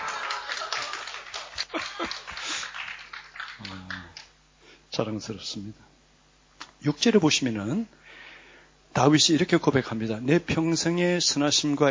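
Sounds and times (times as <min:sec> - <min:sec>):
audience clapping hands: 0:00.0 - 0:04.4
speech: 0:05.0 - 0:05.9, 0:06.8 - 0:08.0, 0:09.0 - 0:11.8.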